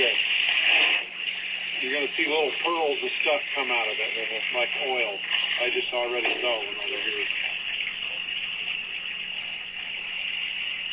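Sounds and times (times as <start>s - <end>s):
water gushing out of a well: 0.0s - 10.9s
speech: 2.0s - 7.4s.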